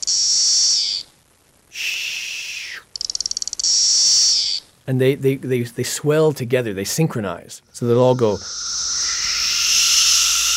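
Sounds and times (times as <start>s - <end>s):
Magicicada cassini cicada white noise song: 0.0s - 4.7s, 7.6s - 10.5s
speech: 4.9s - 8.8s.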